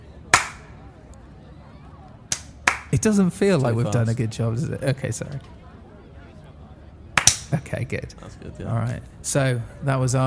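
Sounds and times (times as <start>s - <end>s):
hand claps: 0.3s - 0.7s, 2.3s - 3.0s, 7.2s - 7.6s
speech: 2.9s - 5.6s, 7.5s - 10.2s.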